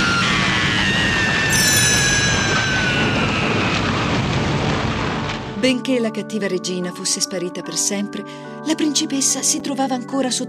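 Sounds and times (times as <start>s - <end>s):
lightning strike splitting a mountain: 0.0s - 5.6s
sharp burst: 0.0s - 5.6s
high ringing tones sliding downward: 1.4s - 4.9s
speech: 5.6s - 10.4s.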